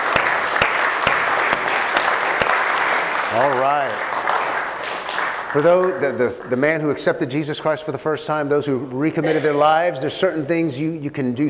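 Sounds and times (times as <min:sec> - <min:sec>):
church congregation clapping during a service: 0:00.0 - 0:07.2
speech: 0:03.4 - 0:04.1, 0:05.5 - 0:11.4.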